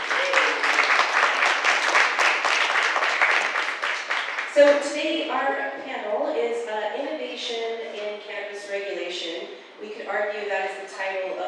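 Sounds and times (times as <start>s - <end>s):
crowd applause: 0.0s - 4.6s
speech: 4.6s - 7.9s, 9.1s - 11.4s.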